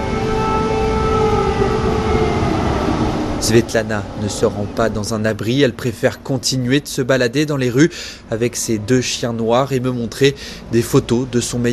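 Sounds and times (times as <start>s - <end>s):
air-raid siren: 0.0s - 6.4s
speech: 3.5s - 11.7s.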